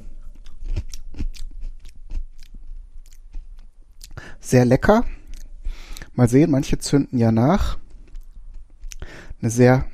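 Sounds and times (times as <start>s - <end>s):
biting into and chewing a fresh fruity chili pepper: 0.0s - 4.2s, 5.1s - 6.2s, 7.8s - 9.1s
speech: 4.5s - 5.2s, 6.2s - 7.8s, 9.4s - 9.9s.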